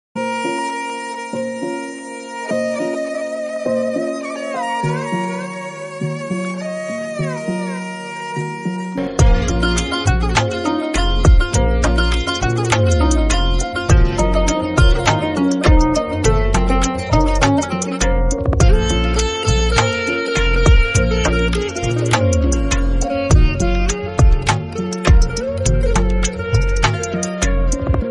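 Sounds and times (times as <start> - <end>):
background music ringtone: 0.2 - 28.0.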